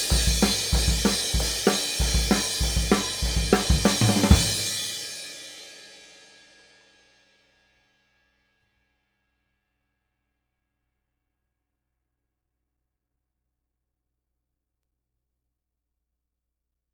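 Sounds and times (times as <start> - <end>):
18-inch Zildjian A Custom cymbal: 0.0 - 7.0.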